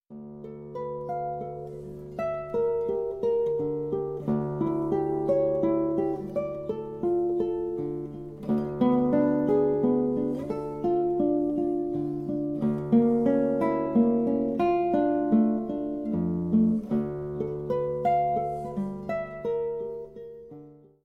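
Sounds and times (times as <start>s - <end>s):
minor guitar cascades: 0.2s - 20.9s.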